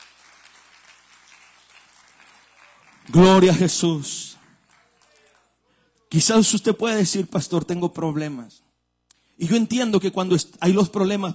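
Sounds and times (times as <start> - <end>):
church congregation clapping in praise during a worship service: 0.0 - 6.4
speech: 3.1 - 4.4, 6.1 - 8.7, 9.4 - 11.3.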